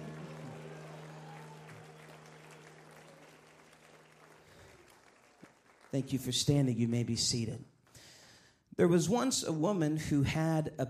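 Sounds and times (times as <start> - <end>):
people shouting hallelujah: 0.0 - 3.4
audience clapping in a big room: 0.0 - 6.7
speech: 5.9 - 7.7, 8.8 - 10.8.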